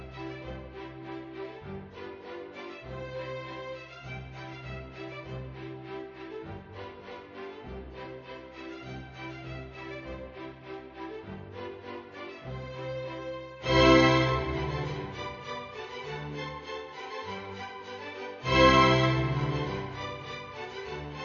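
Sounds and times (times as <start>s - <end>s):
polka music: 13.6s - 17.1s, 18.4s - 21.2s.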